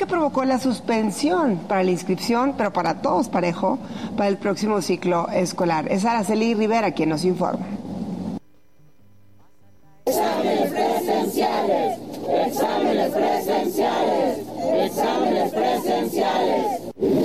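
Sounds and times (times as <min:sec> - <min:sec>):
speech: 0:00.0 - 0:07.8
about 100 applicants and parents chanting while marching on a university campus: 0:10.1 - 0:17.2.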